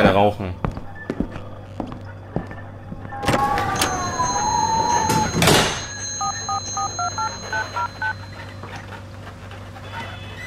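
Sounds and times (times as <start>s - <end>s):
low steady hum: 0.0s - 9.3s
rising tonal whine: 2.6s - 8.6s
telephone keypad tones dialing: 3.7s - 8.6s.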